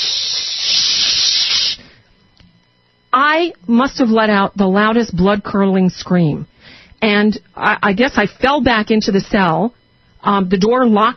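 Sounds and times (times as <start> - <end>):
voice imitating mace spray hiss: 0.0 - 1.9
speech: 3.2 - 11.1.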